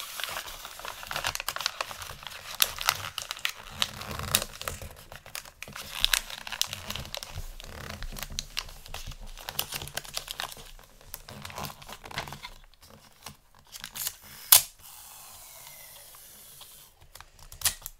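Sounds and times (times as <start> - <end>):
gift wrapping paper crinkling and rustling: 0.0 - 14.3.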